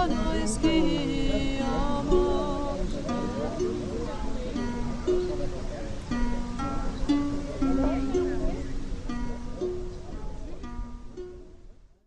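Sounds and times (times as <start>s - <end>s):
person singing: 0.0s - 5.0s
Viking music: 0.0s - 12.0s.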